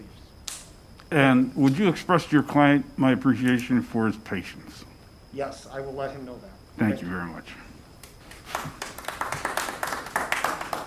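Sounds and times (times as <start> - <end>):
speech: 1.1 - 7.7
audience clapping: 8.0 - 10.8.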